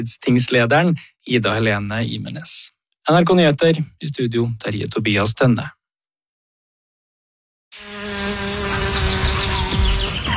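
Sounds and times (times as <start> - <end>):
speech: 0.0 - 5.8
bumblebee buzzing: 7.8 - 10.3.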